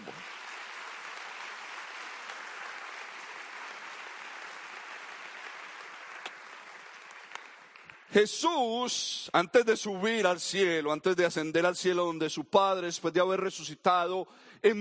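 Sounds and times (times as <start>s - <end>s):
audience applause: 0.0s - 8.1s
speech: 8.1s - 14.7s.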